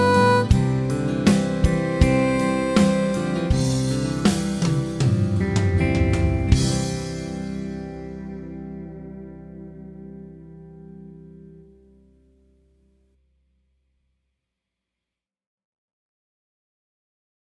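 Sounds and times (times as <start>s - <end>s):
harp: 0.0s - 9.8s.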